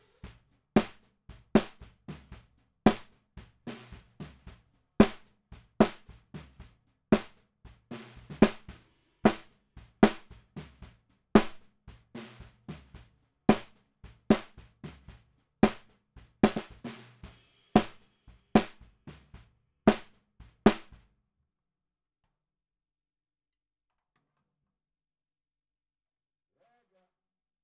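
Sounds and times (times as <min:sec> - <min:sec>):
bottom snare drum: 0:00.0 - 0:21.0.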